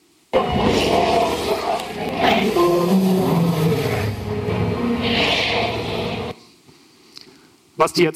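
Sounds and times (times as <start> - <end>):
dinosaur roar from a documentary: 0.4 - 6.4.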